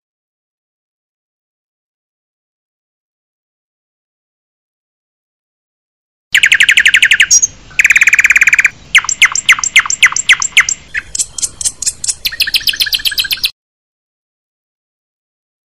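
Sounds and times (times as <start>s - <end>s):
murai and kacer birds singing: 6.3s - 13.6s.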